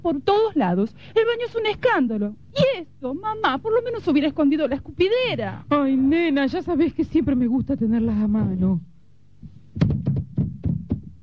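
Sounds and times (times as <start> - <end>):
speech: 0.0 - 8.9, 9.8 - 10.3
knocking on the door of a humble house: 7.3 - 8.8, 9.4 - 11.2.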